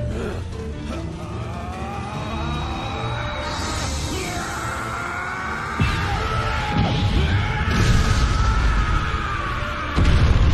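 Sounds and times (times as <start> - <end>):
person screaming: 0.2 - 10.4.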